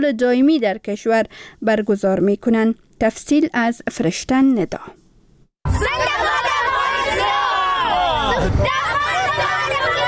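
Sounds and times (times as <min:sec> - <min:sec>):
speech: 0:00.0 - 0:05.0
Afghan children chanting slogans at Independence Day celebration in Kabul: 0:05.7 - 0:10.0.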